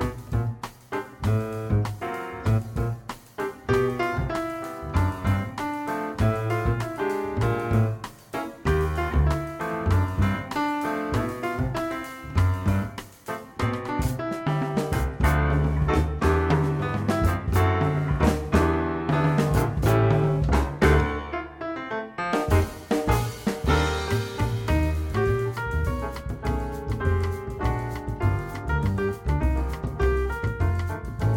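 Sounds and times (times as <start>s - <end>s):
jazz trio playing: 0.0s - 31.3s.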